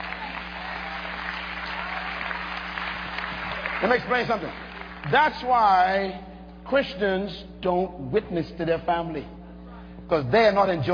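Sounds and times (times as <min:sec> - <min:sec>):
audience clapping: 0:00.0 - 0:05.6
speech: 0:03.8 - 0:09.4, 0:10.0 - 0:10.9.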